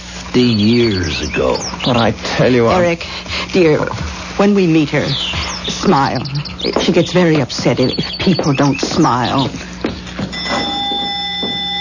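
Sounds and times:
speech: 0.4 - 9.7
doorbell ringing: 10.3 - 11.7.

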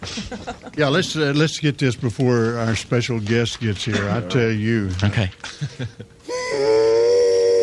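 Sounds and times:
laughter: 0.0 - 0.8, 5.4 - 6.3
speech: 0.1 - 6.8
person imitating a train whistle: 6.2 - 7.6.

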